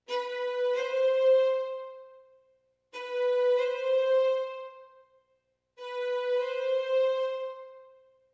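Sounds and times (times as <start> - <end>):
bowed string instrument played at heel mid and tip of bow: 0.0 - 5.2, 5.8 - 8.3.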